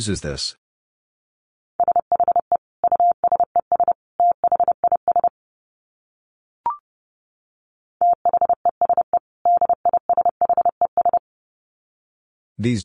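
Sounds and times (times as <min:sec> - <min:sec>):
speech: 0:00.0 - 0:00.6, 0:12.6 - 0:12.8
Morse code tones at 30 wpm: 0:01.8 - 0:05.3, 0:08.0 - 0:11.2.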